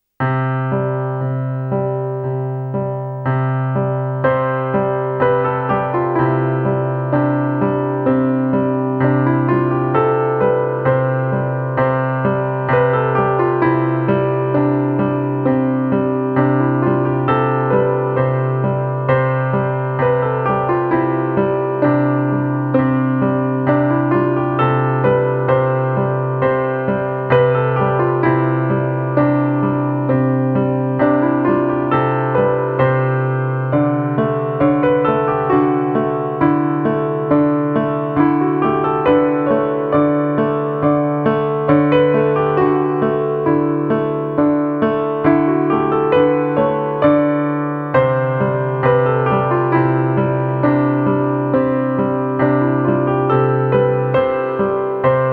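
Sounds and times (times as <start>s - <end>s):
solo piano: 0.0s - 55.3s.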